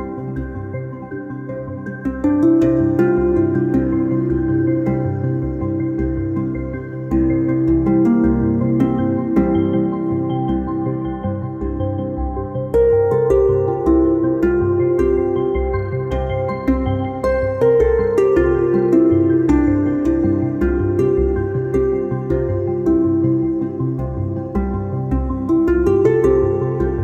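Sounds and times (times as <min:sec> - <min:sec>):
dreamy harp: 0:00.0 - 0:27.0.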